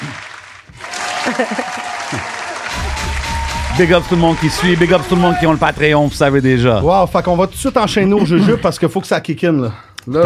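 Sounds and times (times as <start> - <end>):
audience clapping to welcome two guests: 0.0 - 6.3
laughter: 0.8 - 3.2, 7.8 - 9.0
audience shouting to welcome two guests: 0.8 - 6.4
speech: 1.2 - 2.3, 3.8 - 10.2.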